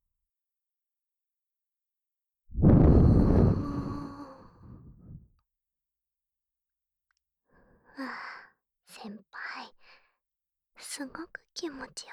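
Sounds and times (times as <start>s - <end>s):
blowing into ear: 2.5s - 5.1s.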